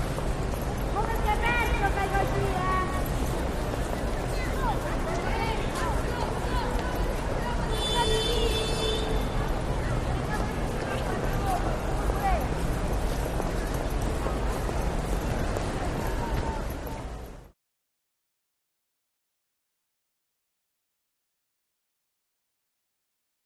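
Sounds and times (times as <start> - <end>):
piazza ambience in Rome, Italy: 0.0 - 17.6.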